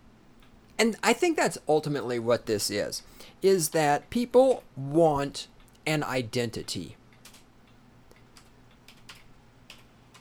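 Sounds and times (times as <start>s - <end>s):
quiet hum: 0.0s - 10.1s
speech: 0.8s - 7.0s
typing on a computer keyboard: 7.1s - 7.5s, 8.1s - 10.1s.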